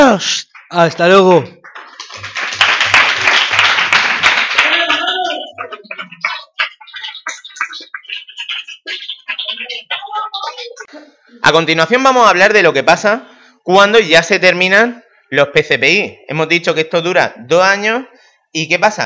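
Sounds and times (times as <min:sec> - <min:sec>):
speech: 0:00.1 - 0:02.4, 0:11.3 - 0:19.0
applause: 0:01.4 - 0:10.0.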